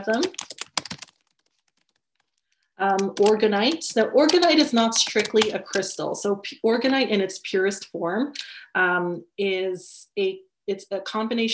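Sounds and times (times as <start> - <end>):
speech: 0.0 - 0.4, 2.8 - 11.5
typing on a computer keyboard: 0.0 - 6.0.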